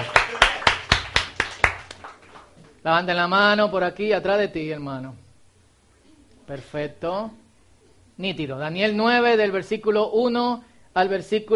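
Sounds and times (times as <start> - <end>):
audience applause: 0.0 - 2.6
speech: 2.8 - 5.2, 6.5 - 7.4, 8.2 - 11.5.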